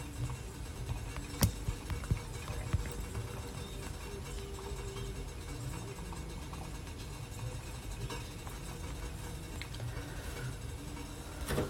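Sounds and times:
coffee roaster roasting Mocha blend beans: 0:00.0 - 0:11.6
faint hum: 0:00.0 - 0:11.6
Mocha blend coffee beans clicking: 0:01.2 - 0:03.0.

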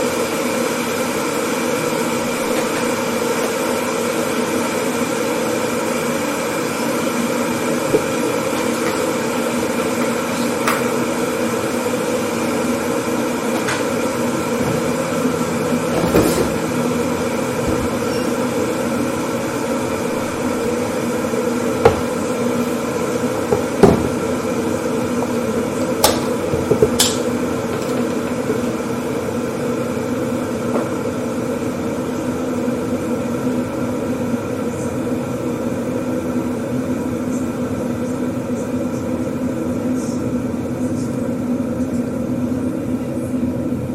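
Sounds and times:
kitchen appliance hum: 0:00.0 - 0:43.9.

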